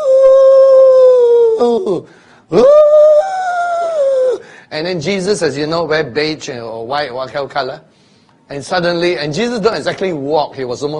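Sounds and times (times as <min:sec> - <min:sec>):
voice imitating howling strong wind: 0:00.0 - 0:04.5
speech: 0:01.6 - 0:02.9, 0:04.7 - 0:07.9, 0:08.5 - 0:10.9.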